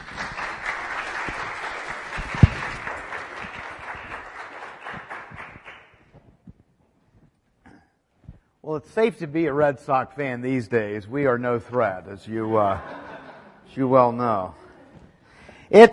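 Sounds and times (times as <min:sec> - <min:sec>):
audience applause welcoming a guest speaker: 0:00.0 - 0:06.4
speech: 0:08.7 - 0:13.0, 0:13.8 - 0:14.6, 0:15.7 - 0:15.9
laughter: 0:12.4 - 0:15.0.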